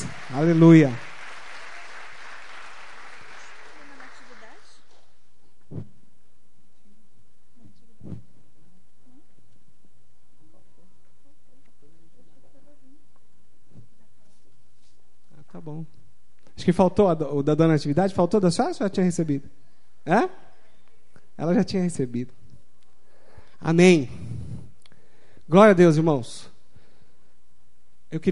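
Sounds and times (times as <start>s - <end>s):
audience applause: 0.0s - 4.8s
speech: 0.3s - 1.0s, 16.7s - 20.4s, 21.4s - 22.4s, 23.6s - 24.3s, 25.5s - 26.5s, 28.1s - 28.3s.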